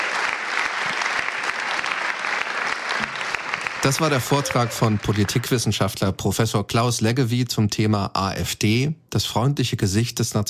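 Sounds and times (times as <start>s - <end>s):
audience applause after a lecture: 0.0s - 5.8s
speech: 3.8s - 10.4s.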